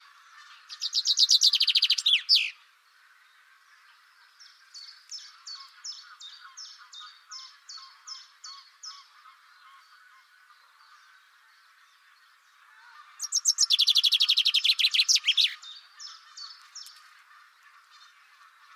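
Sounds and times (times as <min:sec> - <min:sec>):
bird chirps: 0:00.0 - 0:02.7, 0:03.5 - 0:18.7.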